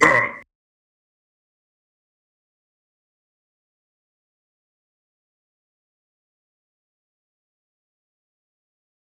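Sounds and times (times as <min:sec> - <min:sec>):
cry of pain: 0:00.0 - 0:00.4.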